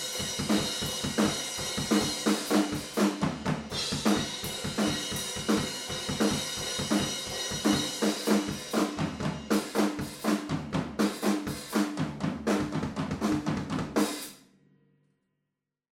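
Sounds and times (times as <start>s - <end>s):
drums recorded in mono ORTF: 0.0s - 14.4s.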